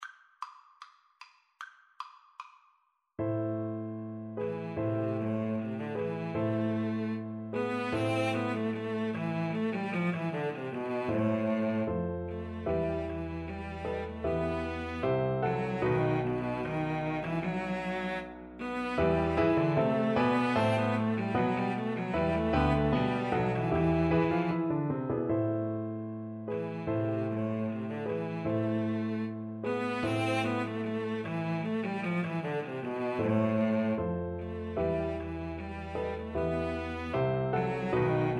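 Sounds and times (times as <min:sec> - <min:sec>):
cello duet: 0:03.4 - 0:38.3.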